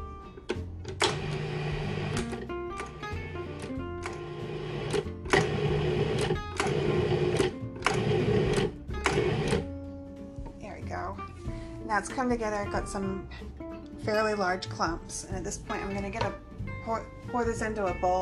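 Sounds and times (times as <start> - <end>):
food processor pulsing: 0.9 - 9.7
speech: 12.0 - 18.2.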